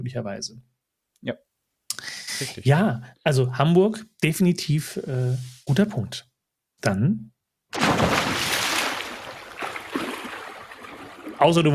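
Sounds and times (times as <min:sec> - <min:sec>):
speech: 0:00.0 - 0:01.5, 0:02.4 - 0:08.2, 0:11.4 - 0:11.7
person jumping into water: 0:07.7 - 0:11.5.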